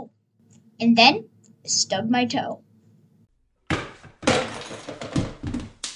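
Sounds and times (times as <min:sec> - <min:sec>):
speech: 0:00.8 - 0:02.6
shelf knocked over with objects tumbling: 0:03.8 - 0:05.7.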